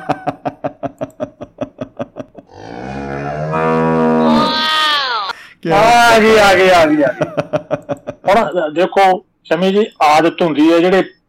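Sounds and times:
laughter: 0.0s - 2.5s, 6.9s - 8.5s
cow mooing: 2.5s - 4.5s
speech: 6.2s - 11.2s.

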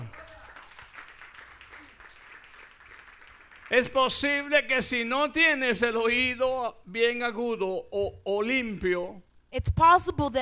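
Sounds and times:
audience applause: 0.0s - 4.4s
speech: 3.7s - 10.4s.

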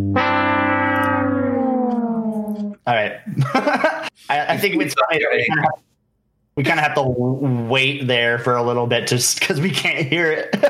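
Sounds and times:
game show losing horn sound effect: 0.0s - 2.8s
speech: 2.9s - 5.9s, 6.6s - 10.6s
laughter: 3.3s - 4.2s, 10.3s - 10.6s.

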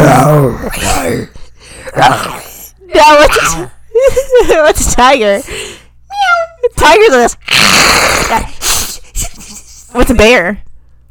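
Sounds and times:
voice imitating a lion's roar: 0.0s - 3.7s, 7.5s - 8.6s
speech: 2.0s - 2.4s, 3.0s - 3.8s, 4.4s - 5.7s, 6.8s - 9.3s, 10.0s - 10.7s.

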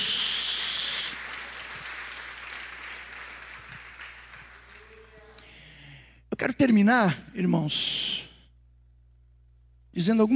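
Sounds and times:
audience applauding: 0.0s - 5.5s
speech: 6.4s - 8.1s, 10.0s - 10.3s.

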